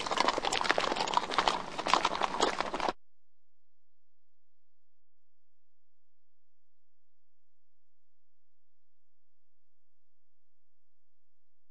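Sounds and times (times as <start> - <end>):
horses walking on gravel: 0.0 - 3.0.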